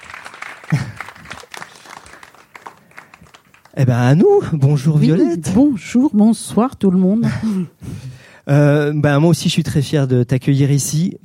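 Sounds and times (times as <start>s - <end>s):
audience applause: 0.0s - 4.0s
speech: 3.8s - 7.9s, 8.5s - 11.2s.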